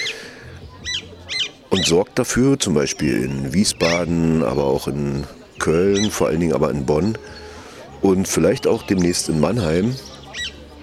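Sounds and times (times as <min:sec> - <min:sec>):
Alexandrine parakeet squawking: 0:00.9 - 0:01.9, 0:03.7 - 0:04.1, 0:05.8 - 0:06.3
speech: 0:01.7 - 0:07.4, 0:08.0 - 0:10.2.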